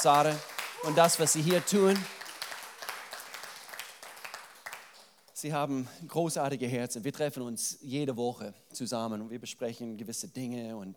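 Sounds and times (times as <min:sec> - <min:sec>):
speech: 0:00.0 - 0:02.2, 0:05.4 - 0:10.9
audience applause: 0:00.0 - 0:05.0.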